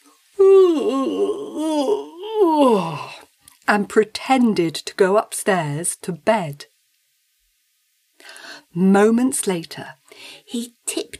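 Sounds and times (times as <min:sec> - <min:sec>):
loud yawn: 0:00.4 - 0:03.3
speech: 0:00.8 - 0:02.1, 0:03.7 - 0:06.7, 0:08.2 - 0:11.1.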